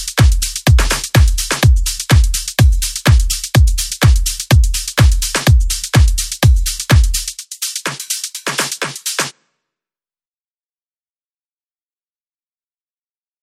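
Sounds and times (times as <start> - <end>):
remix music: 0.0 - 9.3.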